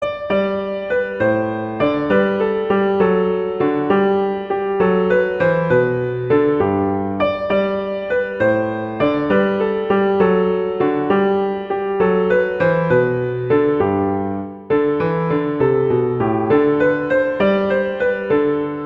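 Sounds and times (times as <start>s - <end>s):
beginner's Christmas carol melody: 0.0s - 18.8s.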